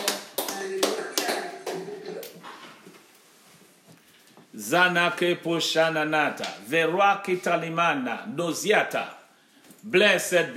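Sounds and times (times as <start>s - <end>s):
audience clapping: 0.0s - 2.4s
hum of voices and tones: 0.0s - 2.8s
speech: 4.6s - 9.2s, 9.8s - 10.5s.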